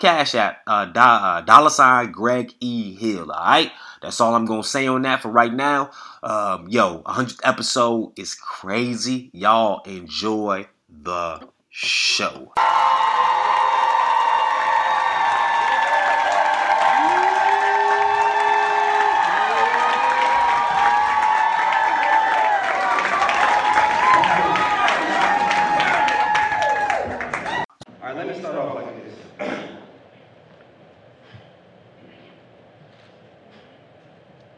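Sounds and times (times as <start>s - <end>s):
speech: 0.0s - 12.8s
live audience applause and cheering: 12.6s - 27.7s.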